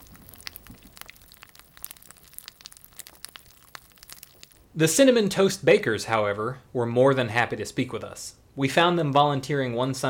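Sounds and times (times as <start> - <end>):
crackling phone static: 0.0 - 4.7
speech: 4.8 - 10.0.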